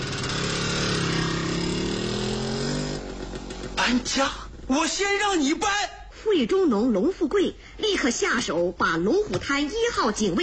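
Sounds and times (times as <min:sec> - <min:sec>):
motorcycle riding away: 0:00.0 - 0:05.6
speech: 0:03.8 - 0:10.4.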